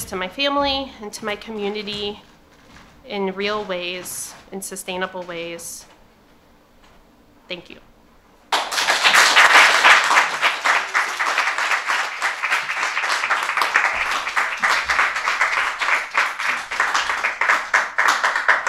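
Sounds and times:
speech: 0:00.1 - 0:02.3, 0:03.1 - 0:05.9, 0:07.5 - 0:07.9
audience applause for storytellers: 0:08.5 - 0:18.6.

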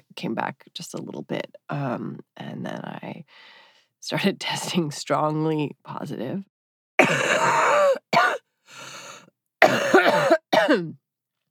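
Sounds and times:
speech: 0:00.2 - 0:08.0, 0:10.6 - 0:11.0
person coughing: 0:07.0 - 0:08.4, 0:09.6 - 0:11.0.

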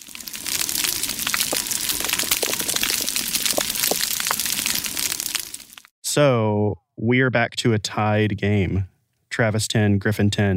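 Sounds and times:
coral reef organisms popping and chewing underwater: 0:00.1 - 0:05.9
speech: 0:06.2 - 0:10.5.

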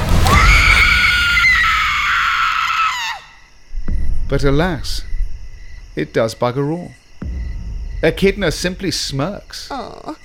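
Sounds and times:
ear-piercing horror-movie scream: 0:00.2 - 0:03.5
speech: 0:04.3 - 0:05.1, 0:06.0 - 0:07.0, 0:08.0 - 0:10.2.

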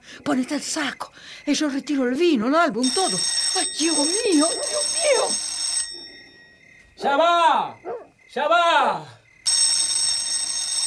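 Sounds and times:
speech: 0:00.2 - 0:05.5, 0:07.0 - 0:09.1
doorbell ringing: 0:02.8 - 0:06.6, 0:09.5 - 0:10.8.

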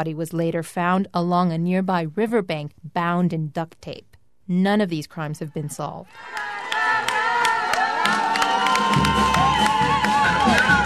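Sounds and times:
speech: 0:00.0 - 0:06.6
crowd cheering at a rodeo arena: 0:06.0 - 0:10.8
people clapping: 0:06.1 - 0:10.8.

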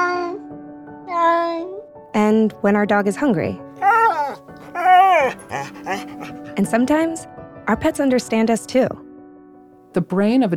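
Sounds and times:
speech: 0:02.2 - 0:03.6, 0:06.6 - 0:09.0, 0:10.0 - 0:10.5
cat meowing to be let out: 0:03.8 - 0:06.4.

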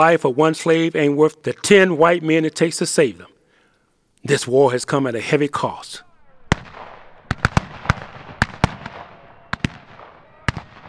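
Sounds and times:
speech: 0:00.0 - 0:03.3, 0:04.2 - 0:06.7
rifle shots: 0:06.0 - 0:10.8.

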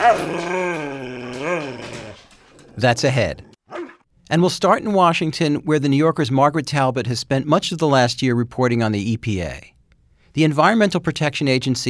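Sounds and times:
speech: 0:00.0 - 0:00.6, 0:02.8 - 0:03.5, 0:04.3 - 0:09.8, 0:10.4 - 0:11.8
pet dog growling: 0:00.0 - 0:04.0.

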